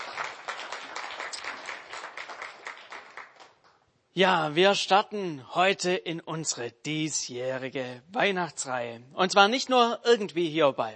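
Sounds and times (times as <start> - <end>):
audience applause: 0.0 - 3.6
speech: 4.2 - 10.9.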